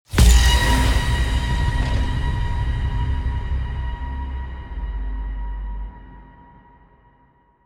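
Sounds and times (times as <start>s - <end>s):
production element impact hit: 0.1s - 6.1s.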